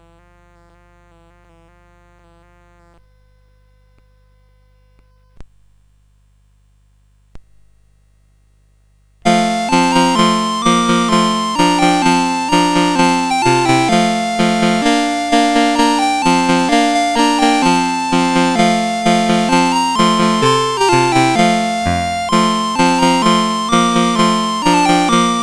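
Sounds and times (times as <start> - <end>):
CSG 8580 sound chip: 9.3 - 25.4.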